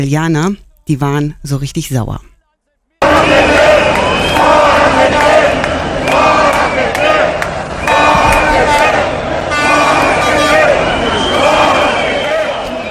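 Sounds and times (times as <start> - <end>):
speech: 0.0 - 2.3
car horns honking: 3.0 - 12.8
street protest crowd chanting and shouting: 3.0 - 12.8.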